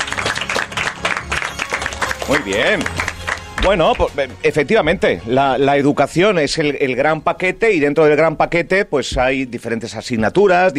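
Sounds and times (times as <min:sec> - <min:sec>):
audience applause: 0:00.0 - 0:04.2
speech: 0:02.3 - 0:03.0, 0:03.6 - 0:10.7.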